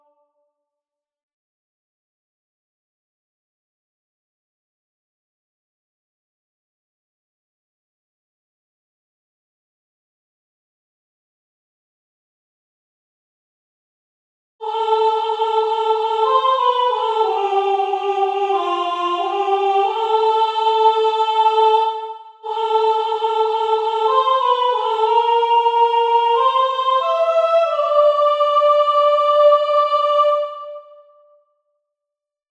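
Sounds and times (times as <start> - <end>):
soprano singing: 14.6 - 31.1.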